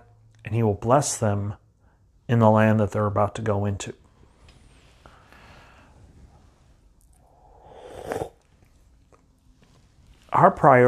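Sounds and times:
speech: 0.5 - 1.6, 2.3 - 4.0, 10.3 - 10.8
person sipping soup: 7.1 - 8.7.

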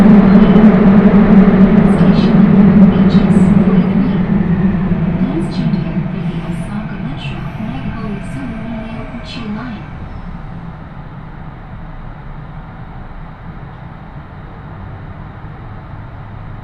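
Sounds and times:
faint voices: 0.0 - 10.8
train low rumble and droning hum on the Shiomibashi to Namba journey: 0.0 - 16.6.

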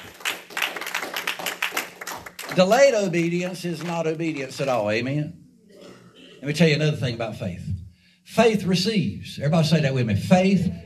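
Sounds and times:
audience clapping hands in praise: 0.0 - 5.0
speech: 2.5 - 5.4, 6.4 - 7.7, 8.3 - 10.8.

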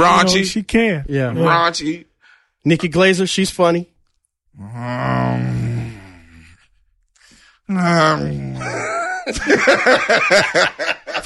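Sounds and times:
speech: 0.0 - 3.9, 4.6 - 5.6, 7.7 - 11.2
person growling in disagreement: 4.6 - 6.7, 7.7 - 8.9
laughter: 8.6 - 11.2.

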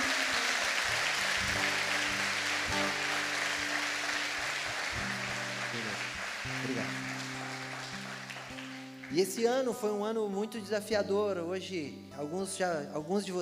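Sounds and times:
audience applauding loudly: 0.0 - 9.6
speech: 9.1 - 13.3.

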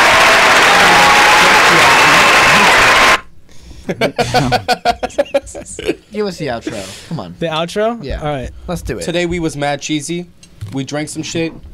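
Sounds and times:
audience applause: 0.0 - 3.2
laughter: 3.9 - 6.1
speech: 4.0 - 11.7.

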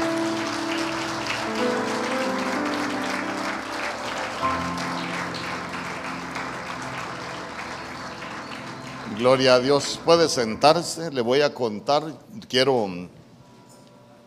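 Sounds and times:
audience applauding: 0.0 - 10.8
speech: 9.2 - 13.2.

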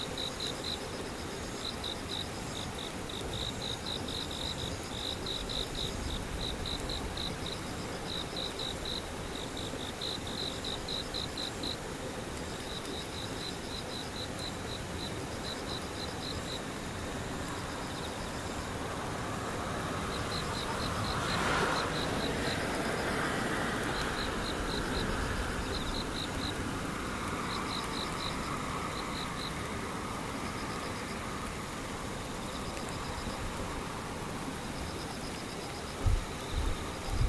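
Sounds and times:
insects and cicadas trilling: 0.0 - 37.2
vehicle passing: 18.7 - 27.5.

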